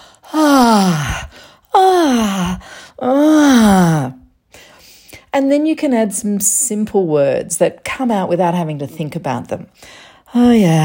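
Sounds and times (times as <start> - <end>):
open-mouth sexual moaning: 0.3 - 4.2
speech: 5.4 - 10.8.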